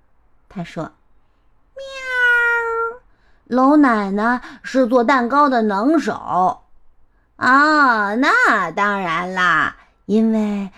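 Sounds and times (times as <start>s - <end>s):
speech: 0.5s - 1.0s, 3.5s - 6.6s, 7.4s - 10.7s
cat meowing: 1.8s - 3.0s.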